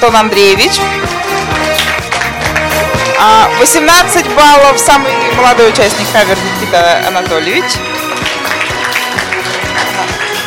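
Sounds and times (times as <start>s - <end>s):
speech: 0.1s - 1.6s, 3.2s - 7.9s
regular thumping beat: 0.5s - 10.4s
crowd clapping: 0.8s - 4.5s, 7.8s - 10.4s.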